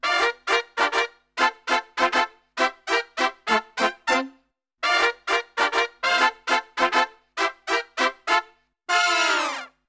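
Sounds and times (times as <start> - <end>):
brass music: 0.0 - 9.8.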